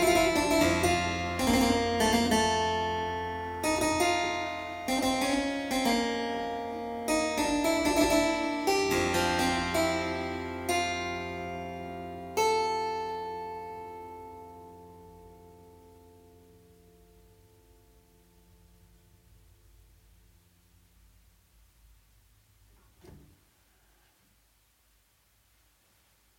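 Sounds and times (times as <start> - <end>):
harpsichord prelude in G minor: 0.0 - 16.1.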